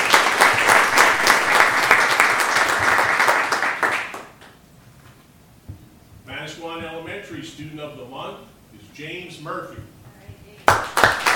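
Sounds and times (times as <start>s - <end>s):
audience applause: 0.0s - 4.4s, 10.7s - 11.3s
speech: 7.6s - 9.9s.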